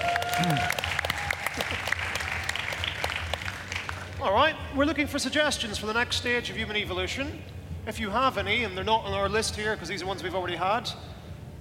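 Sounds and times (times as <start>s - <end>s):
audience applause: 0.0s - 4.2s
speech: 0.4s - 0.8s, 4.2s - 11.1s.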